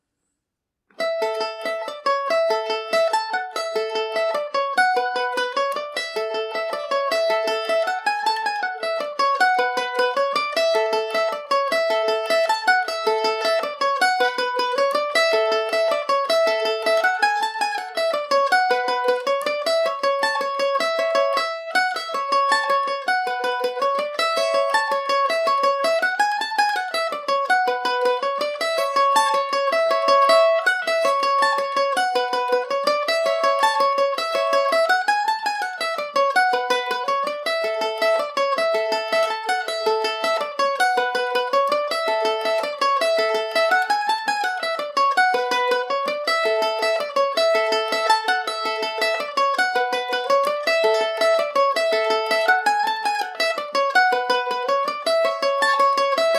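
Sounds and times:
Irish mandolin in A major: 0.9 - 56.3.

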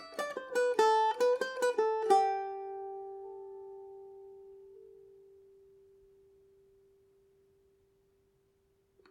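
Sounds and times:
Irish mandolin in G major: 0.0 - 7.3.

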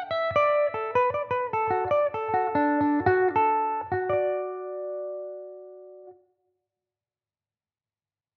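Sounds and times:
Irish mandolin playing in D major: 0.0 - 6.1.

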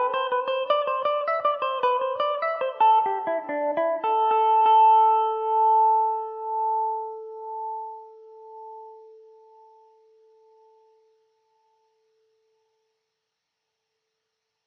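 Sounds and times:
Irish mandolin in A Dorian: 0.0 - 7.7.

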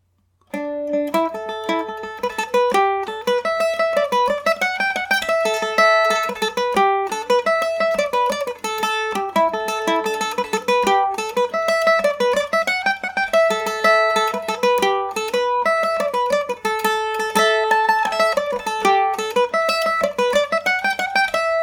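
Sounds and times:
Irish mandolin in A dorian: 0.4 - 21.6.

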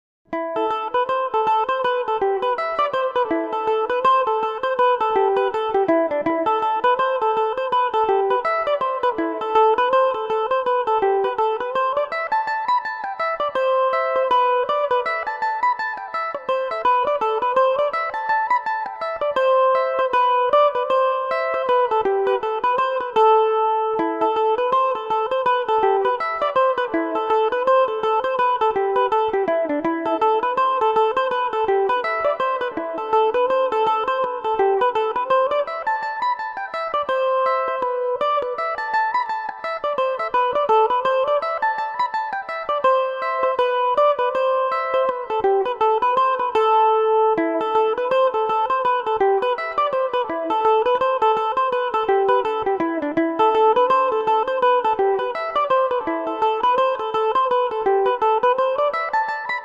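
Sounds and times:
mandolin: 0.3 - 59.6.

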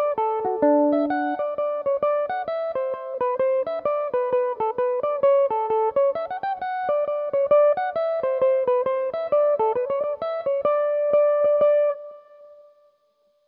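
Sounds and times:
Irish slip jig in D major on Belmuse EM-190 electric mandolin: 0.0 - 12.1.

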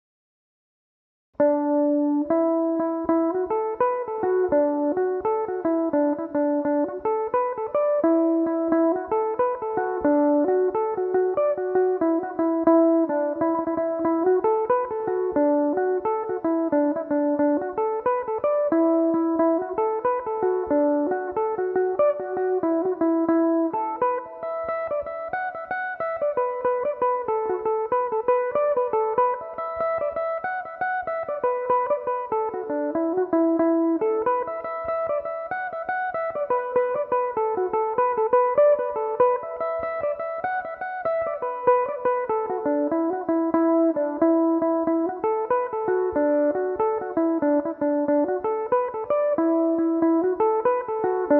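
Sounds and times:
Irish mandolin playing tunes in E dorian: 1.6 - 51.3.

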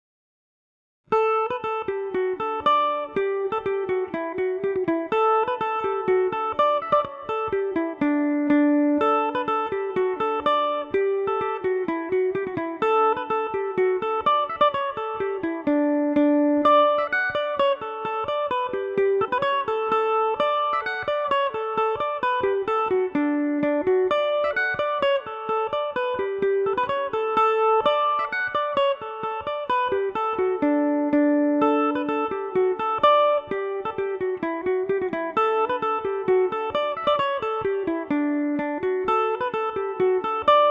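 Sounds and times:
Irish mandolin playing in D major: 1.2 - 40.6.

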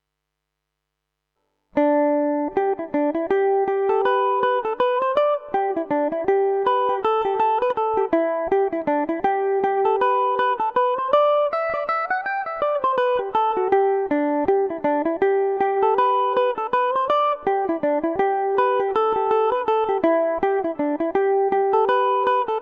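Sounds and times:
Irish mandolin in G major: 1.6 - 22.6.

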